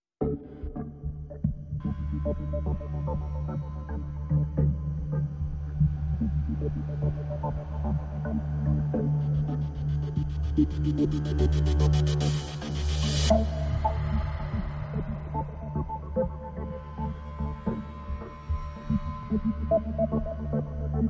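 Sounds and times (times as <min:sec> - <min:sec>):
synth pads and pulses: 0:00.2 - 0:21.0.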